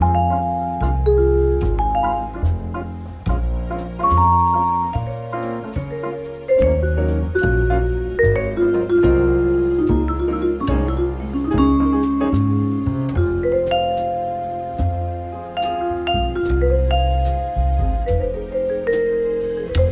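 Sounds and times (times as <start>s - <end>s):
fortepiano played pianissimo: 0.0s - 19.9s.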